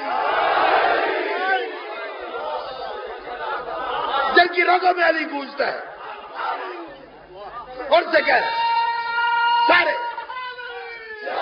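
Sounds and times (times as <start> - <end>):
crowd at a religious gathering shouting in response to a call: 0.0 - 4.6, 5.9 - 7.1, 8.4 - 11.4
speech: 4.4 - 5.9, 7.9 - 8.6, 9.7 - 10.0.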